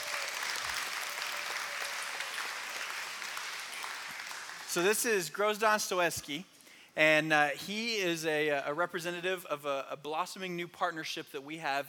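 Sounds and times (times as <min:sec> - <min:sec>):
audience applause welcoming a guest at a morning gathering: 0:00.0 - 0:04.9
speech: 0:04.7 - 0:11.8.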